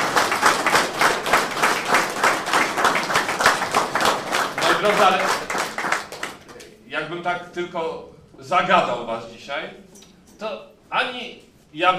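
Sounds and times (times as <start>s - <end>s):
audience applause and clapping: 0.0s - 6.6s
speech: 4.8s - 5.5s, 7.1s - 9.8s, 10.4s - 11.9s.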